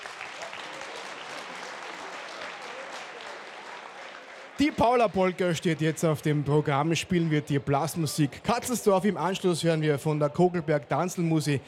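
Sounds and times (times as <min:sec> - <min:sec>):
applause: 0:00.0 - 0:06.7
speech: 0:04.6 - 0:11.6.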